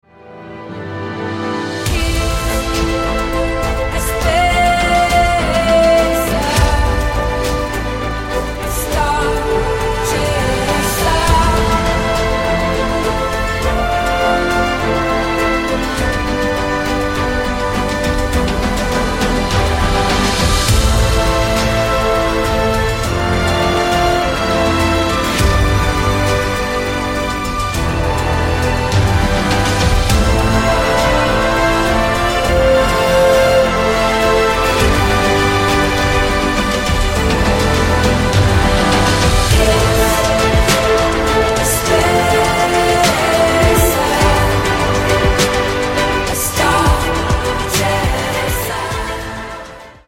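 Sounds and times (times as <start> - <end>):
orchestral music: 0.0 - 50.0.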